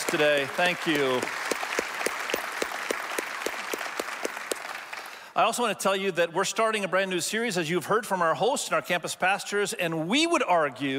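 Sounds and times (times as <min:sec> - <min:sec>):
crowd clapping: 0:00.0 - 0:05.4
speech: 0:00.1 - 0:01.4, 0:05.4 - 0:10.9.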